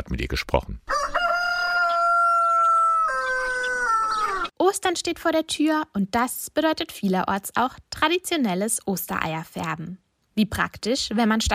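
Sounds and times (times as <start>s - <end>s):
speech: 0.1s - 1.2s, 4.7s - 11.5s
chickens clucking: 0.9s - 4.5s
rooster crowing: 0.9s - 4.5s.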